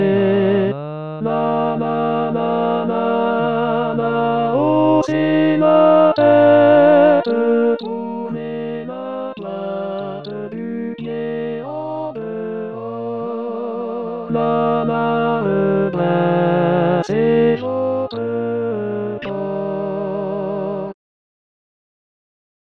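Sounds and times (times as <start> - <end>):
tenor singing: 0.0 - 21.0.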